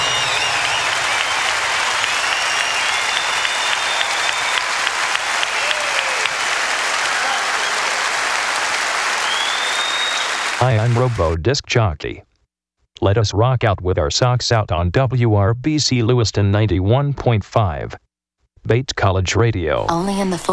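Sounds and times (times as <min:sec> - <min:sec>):
audience applause: 0:00.0 - 0:11.4
speech: 0:10.9 - 0:12.3, 0:13.0 - 0:18.0, 0:18.6 - 0:20.5.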